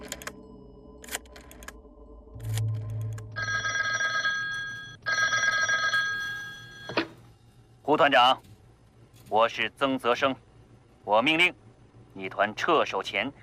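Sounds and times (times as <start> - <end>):
low hum: 0.0 - 13.4
telephone ringing: 3.2 - 7.2
speech: 7.9 - 8.5, 9.3 - 10.4, 11.1 - 11.6, 12.2 - 13.4.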